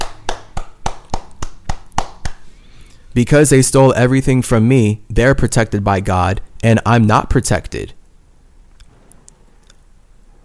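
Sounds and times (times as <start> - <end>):
clapping: 0.0 - 2.4
speech: 3.1 - 8.0.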